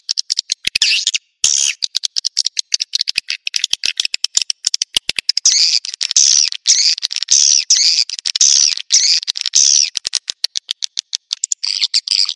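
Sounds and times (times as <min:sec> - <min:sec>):
bird giving rapid dry ticking clicks: 0:00.0 - 0:00.8, 0:01.4 - 0:12.3.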